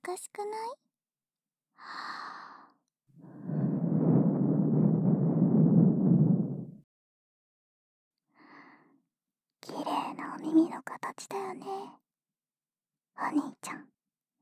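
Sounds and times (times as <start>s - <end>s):
speech: 0.1s - 0.9s, 1.8s - 2.3s, 10.4s - 12.0s, 13.2s - 14.0s
soft blowing into the listener's ear: 3.2s - 6.8s.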